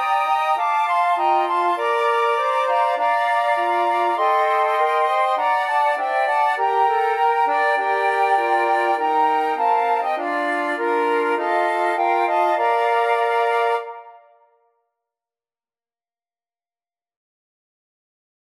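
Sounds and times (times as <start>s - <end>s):
flute quartet: 0.0s - 14.4s.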